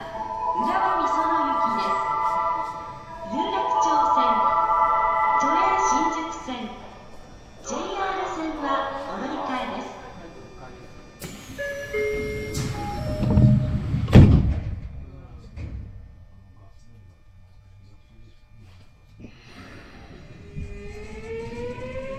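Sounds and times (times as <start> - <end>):
Mitsubishi VVVF inverter whine: 0.0 - 22.1.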